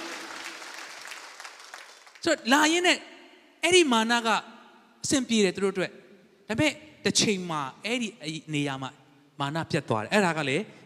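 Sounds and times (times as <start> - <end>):
church congregation clapping hands: 0.0 - 2.4
speech: 2.2 - 10.8.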